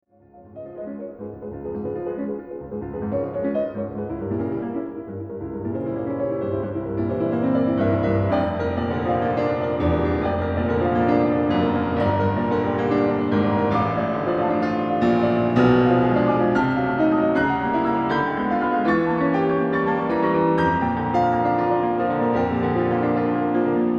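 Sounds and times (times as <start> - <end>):
fast classical music: 0.0 - 23.9.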